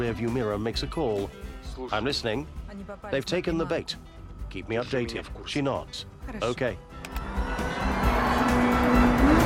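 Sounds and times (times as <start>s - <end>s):
speech: 0.0s - 7.2s
red sports car racing: 7.6s - 9.4s.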